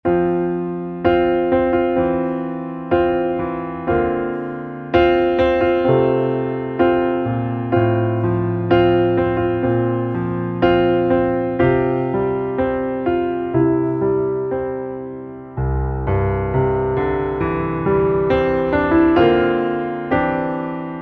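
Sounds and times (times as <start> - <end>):
piano underscore: 0.0 - 20.9.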